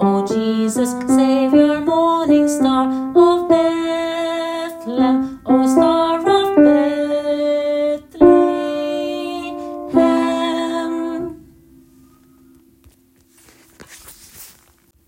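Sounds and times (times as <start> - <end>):
tenor singing: 0.0 - 11.5.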